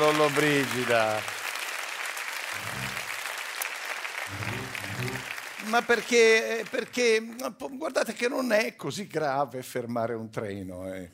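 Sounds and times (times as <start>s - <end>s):
speech: 0.0s - 1.4s, 4.3s - 11.1s
audience applause: 0.0s - 7.4s.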